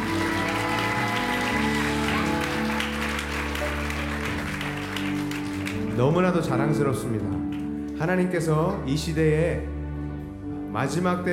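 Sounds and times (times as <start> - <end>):
audience applause: 0.0 - 6.3
sustained held keyboard chords: 0.0 - 11.3
speech: 6.0 - 9.7, 10.8 - 11.3.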